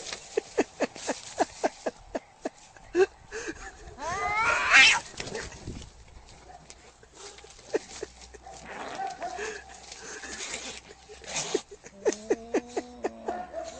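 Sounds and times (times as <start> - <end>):
laughter: 0.1 - 4.0, 6.8 - 13.7
domestic cat yowling angrily: 4.0 - 5.1.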